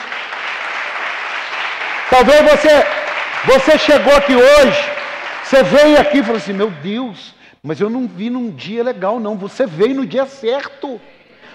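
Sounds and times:
crowd clapping: 0.0s - 7.0s
speech: 2.1s - 11.1s.

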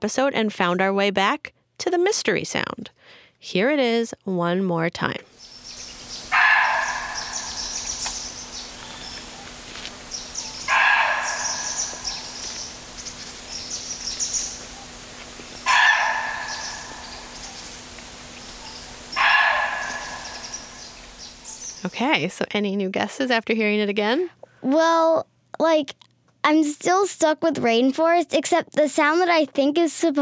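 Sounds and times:
speech: 0.0s - 5.5s, 21.8s - 30.2s
faint steady hum: 5.2s - 25.6s
muntjac deer alarm call barks: 5.7s - 21.8s.

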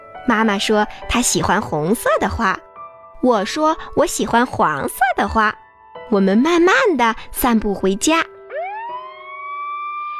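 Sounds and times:
speech: 0.2s - 8.3s
fire engine siren: 8.5s - 10.1s.

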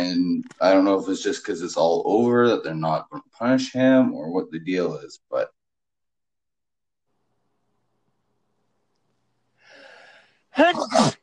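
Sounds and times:
speech: 0.0s - 5.5s, 10.6s - 11.2s
stifled sneeze: 10.6s - 11.2s.

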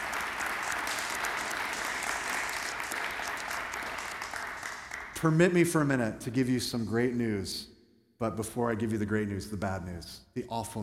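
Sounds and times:
crowd applause: 0.0s - 5.4s
speech: 5.2s - 10.8s.

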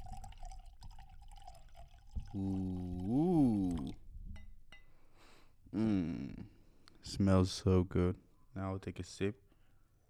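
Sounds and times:
wine poured into a glass: 0.0s - 4.1s
speech: 2.3s - 2.9s, 7.0s - 9.4s.

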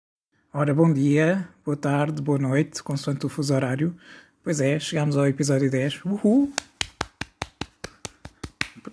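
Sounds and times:
speech: 0.5s - 6.7s
hand claps: 6.5s - 8.9s.

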